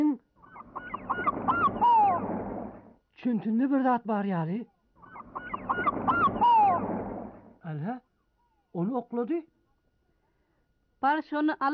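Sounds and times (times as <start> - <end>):
bird calling with goose-like honks: 0.4 - 2.3, 5.0 - 6.9
low rumble: 0.4 - 3.0, 5.0 - 7.6
speech: 3.2 - 4.7, 7.7 - 8.1, 8.7 - 9.6, 11.0 - 11.7.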